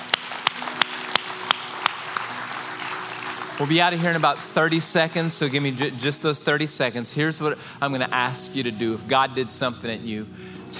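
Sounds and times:
audience clapping in a steady beat: 0.0s - 6.0s
speech: 3.6s - 10.7s.

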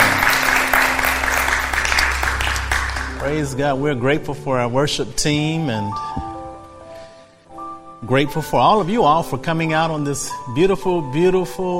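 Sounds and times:
audience clapping: 0.0s - 3.6s
speech: 3.3s - 6.3s, 8.0s - 11.7s.

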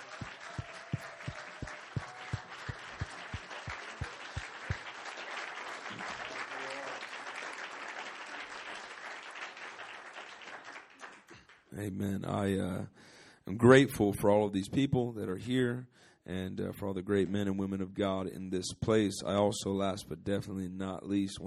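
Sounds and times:
audience applause: 0.0s - 11.7s
speech: 11.8s - 21.4s.

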